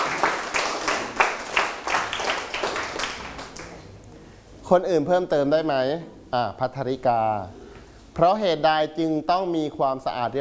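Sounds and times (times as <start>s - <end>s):
classroom clapping for a classmate: 0.0s - 3.9s
speech: 4.7s - 7.6s, 8.2s - 10.3s.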